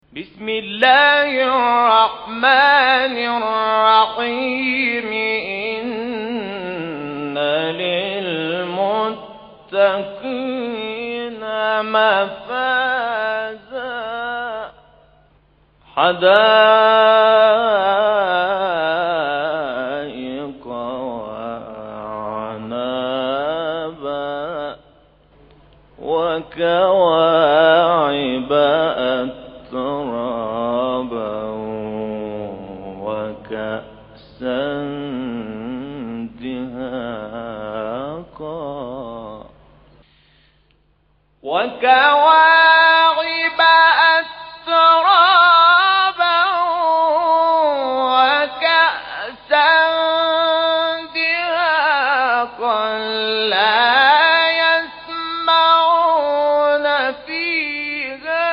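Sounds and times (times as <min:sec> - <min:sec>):
recitation of Quran verses 31 to 36: 0:00.0 - 0:15.2, 0:15.8 - 0:39.8, 0:41.4 - 0:58.5.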